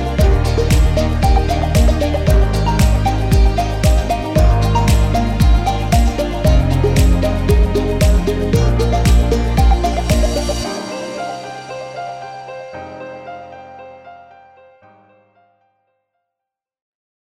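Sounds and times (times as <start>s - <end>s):
upbeat music: 0.0s - 13.2s.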